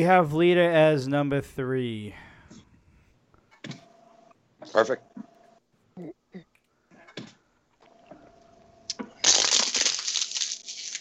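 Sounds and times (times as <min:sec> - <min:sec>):
speech: 0:00.0 - 0:02.3, 0:04.7 - 0:05.3
plastic water bottle being crunched: 0:09.2 - 0:10.9.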